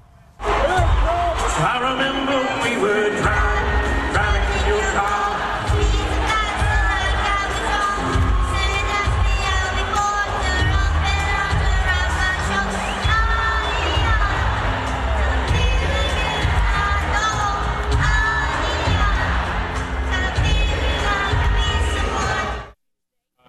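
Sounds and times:
large crowd cheering: 0.0s - 22.8s
music: 0.0s - 22.8s
singing voices: 0.5s - 22.8s
speech: 1.6s - 3.4s.

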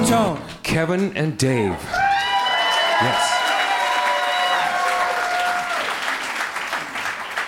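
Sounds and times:
speech: 0.1s - 2.0s, 3.0s - 3.3s
audience applause: 2.0s - 7.4s.

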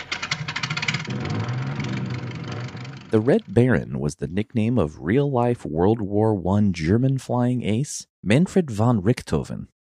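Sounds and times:
Sopwith Camel biplane engine starting and droning: 0.0s - 3.6s
speech: 3.1s - 9.8s.

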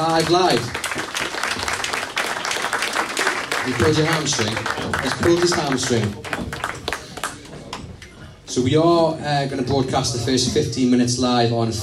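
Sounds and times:
audience applause: 0.0s - 7.8s
speech: 0.2s - 0.8s, 3.6s - 6.7s, 8.5s - 11.8s.

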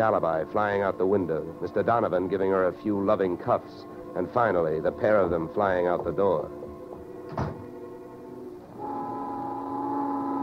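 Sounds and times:
speech: 0.0s - 6.6s
noon factory whistle blowing in New York: 7.2s - 10.4s.

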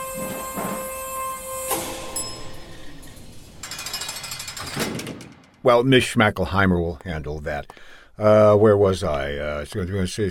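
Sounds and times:
elevator descending: 0.0s - 5.5s
speech: 5.6s - 10.2s.

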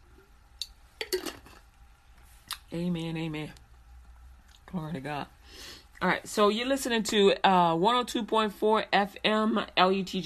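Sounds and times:
glass jar of water clinking: 1.0s - 1.6s
speech: 2.7s - 3.6s, 4.7s - 10.2s.

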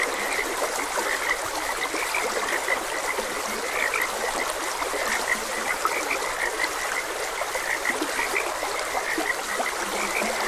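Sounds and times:
frogs croaking in a dense chorus: 0.0s - 10.4s
stream water flowing: 0.0s - 10.4s.

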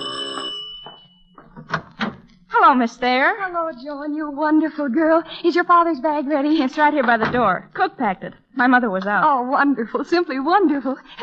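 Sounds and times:
household doorbell ringing: 0.0s - 1.6s
speech: 2.6s - 11.2s.

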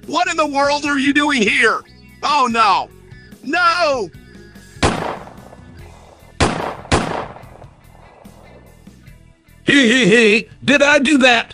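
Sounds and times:
speech: 0.0s - 4.2s, 9.7s - 11.5s
pistol gunshots fired at a computer personality: 4.8s - 8.8s.

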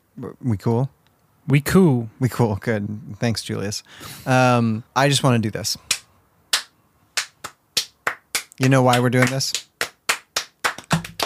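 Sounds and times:
speech: 0.2s - 6.0s, 8.6s - 9.6s
slow hand claps: 5.9s - 11.2s.

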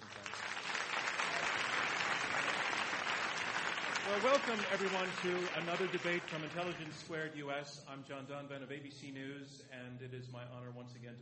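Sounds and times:
audience applause: 0.0s - 7.1s
speech: 4.1s - 11.1s.

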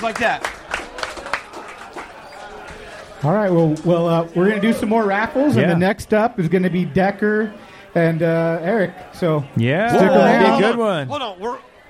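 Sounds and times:
speech: 0.0s - 0.6s, 3.2s - 11.8s
audience applause: 0.0s - 3.4s.

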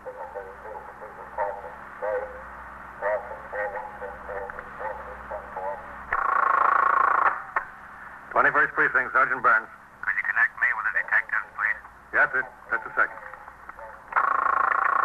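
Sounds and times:
tinny police radio call over a monitor speaker: 0.0s - 7.6s, 8.3s - 15.0s
speech: 8.6s - 9.8s, 12.3s - 12.5s.

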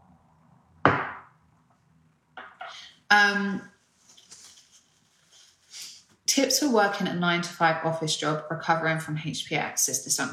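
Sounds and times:
cup or bottle knocking: 0.9s - 1.3s
speech: 3.1s - 3.7s, 6.4s - 10.3s.

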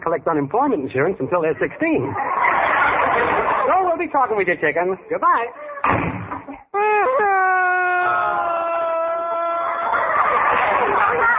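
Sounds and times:
speech: 0.0s - 2.5s, 3.2s - 6.6s
laughter: 2.0s - 4.0s, 6.4s - 11.3s
person crying: 6.7s - 9.2s.

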